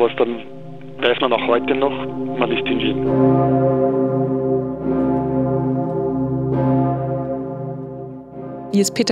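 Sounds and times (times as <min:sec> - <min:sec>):
speech: 0:00.0 - 0:04.2, 0:08.7 - 0:09.0
Pummerin large cathedral bell ringing: 0:00.0 - 0:09.0.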